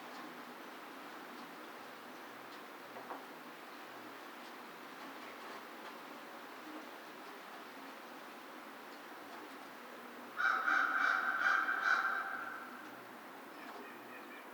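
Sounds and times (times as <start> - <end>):
American crow calling: 10.4 - 13.0.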